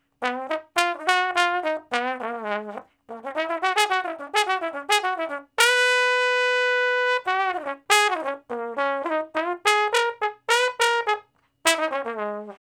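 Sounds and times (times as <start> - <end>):
trombone playing slow blues: 0.1 - 12.6.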